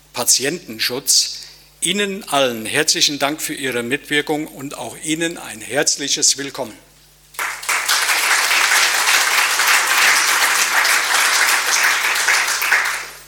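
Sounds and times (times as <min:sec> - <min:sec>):
speech: 0:00.2 - 0:06.9
audience applause: 0:07.4 - 0:13.2.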